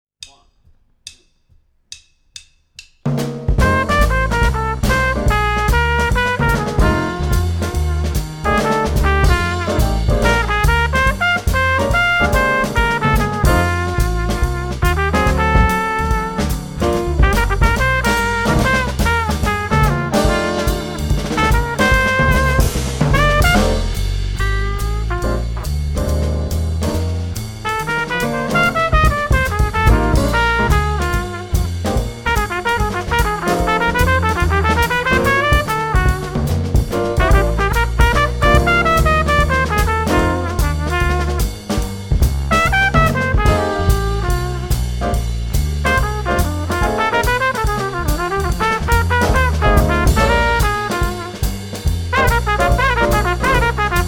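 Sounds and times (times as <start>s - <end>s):
up-tempo blues with jazz wind instruments: 3.6s - 54.0s.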